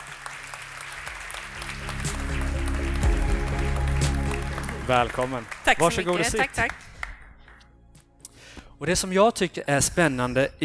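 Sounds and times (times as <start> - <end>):
audience applause welcoming guest on stage: 0.0 - 7.6
low hum: 1.5 - 5.6
speech: 4.9 - 6.9, 8.8 - 10.6.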